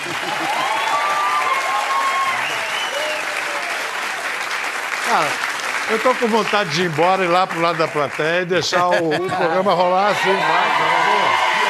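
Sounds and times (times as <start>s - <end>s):
laughter: 0.0s - 0.7s, 8.6s - 10.6s
audience applause: 0.0s - 9.0s, 9.6s - 11.6s
faint cheering: 0.2s - 3.9s, 9.9s - 11.6s
speech: 5.1s - 11.5s.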